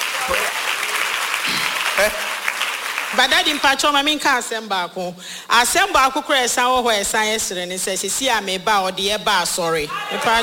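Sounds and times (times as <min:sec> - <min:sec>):
audience clapping: 0:00.0 - 0:04.1
speech: 0:02.0 - 0:02.3, 0:03.1 - 0:10.4.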